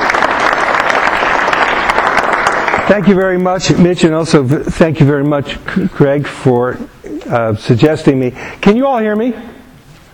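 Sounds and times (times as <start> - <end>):
audience applause welcoming a speaker at a corporate talk: 0.0 - 3.8
speech: 2.9 - 9.6.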